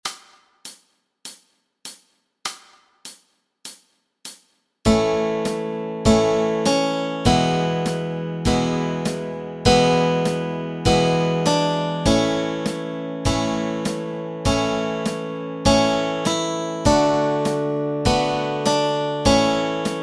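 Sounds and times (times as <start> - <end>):
melody and chords: 4.9 - 20.0.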